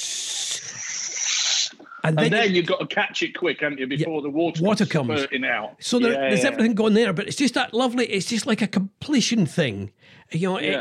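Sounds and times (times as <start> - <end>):
air hissing from a radiator bleed valve: 0.0 - 1.8
speech: 2.0 - 10.7.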